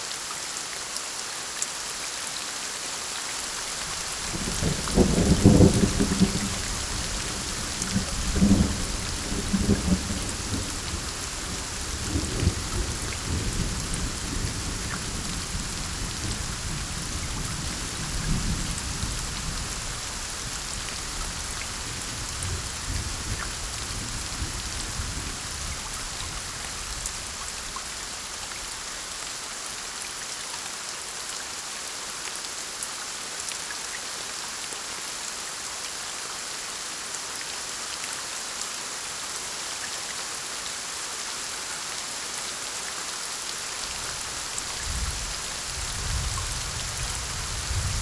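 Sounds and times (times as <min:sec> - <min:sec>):
raindrops: 0:00.5 - 0:30.2, 0:43.1 - 0:47.9
distant thunder: 0:04.3 - 0:15.6, 0:43.7 - 0:47.9.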